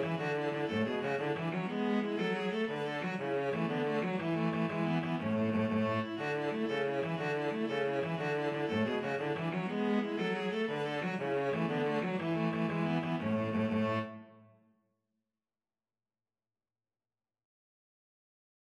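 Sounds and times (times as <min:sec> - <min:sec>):
viola and cello duet playing an Irish jig medley: 0:00.0 - 0:14.2.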